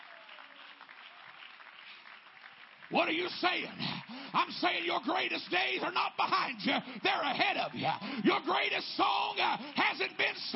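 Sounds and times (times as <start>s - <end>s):
audience clapping: 0.0s - 10.5s
speech: 2.9s - 10.5s.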